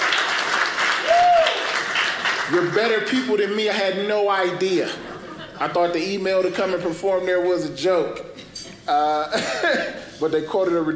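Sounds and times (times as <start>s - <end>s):
audience clapping: 0.0s - 3.3s
speech: 2.5s - 8.3s, 8.9s - 10.9s
laughter: 4.7s - 6.5s.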